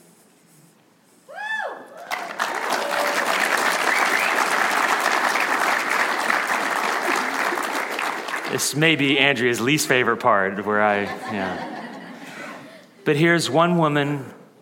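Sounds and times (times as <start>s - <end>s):
applause: 2.0s - 9.5s
laughter: 7.0s - 7.9s, 10.7s - 13.0s
speech: 8.6s - 11.8s, 13.0s - 14.4s.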